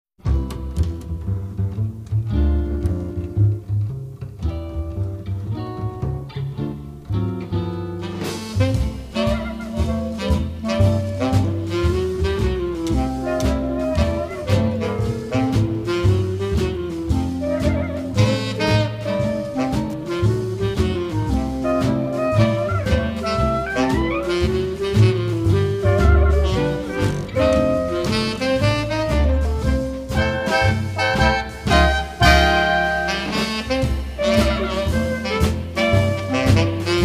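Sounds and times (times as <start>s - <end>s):
groove music: 0.2s - 37.0s.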